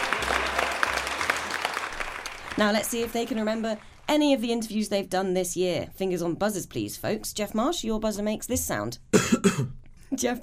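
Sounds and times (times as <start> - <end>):
quiz show audience applause greeting two contestants: 0.0 - 4.2
speech: 2.6 - 10.4.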